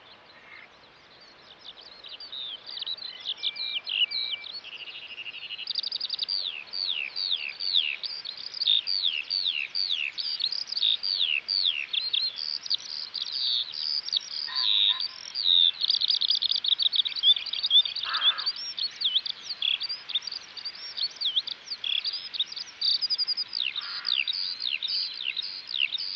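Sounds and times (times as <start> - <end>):
Eurasian Skylark song: 0.0 - 26.1.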